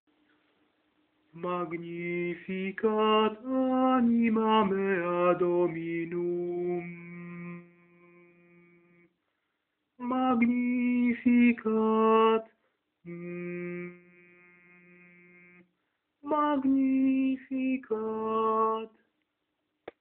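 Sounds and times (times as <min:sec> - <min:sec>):
soprano singing a canticle: 0:01.4 - 0:09.0, 0:10.0 - 0:12.4, 0:16.2 - 0:18.9.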